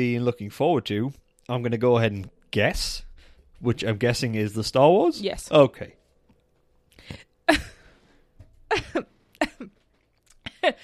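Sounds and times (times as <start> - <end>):
speech: 0.0 - 6.0, 7.1 - 7.8, 8.7 - 9.7, 10.6 - 10.8
person coughing into a microphone: 8.7 - 9.8.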